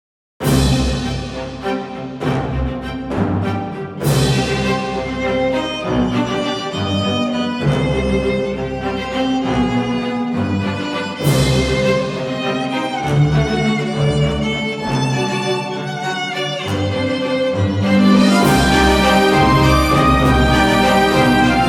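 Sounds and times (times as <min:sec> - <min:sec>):
violin: 0:01.0 - 0:21.6.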